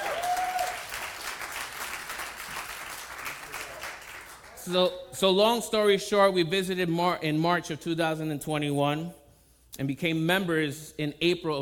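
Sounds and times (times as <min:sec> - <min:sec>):
audience applause: 0:00.0 - 0:04.6
speech: 0:04.7 - 0:09.2, 0:09.8 - 0:11.6.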